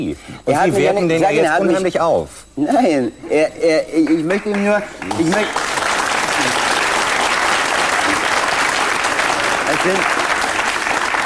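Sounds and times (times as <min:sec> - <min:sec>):
speech: 0:00.0 - 0:05.7, 0:09.8 - 0:10.2
audience applause: 0:04.2 - 0:11.2.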